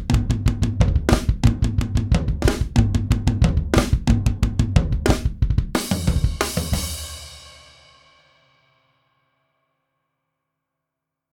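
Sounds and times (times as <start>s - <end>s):
dry heavy metal drums: 0.0s - 7.8s.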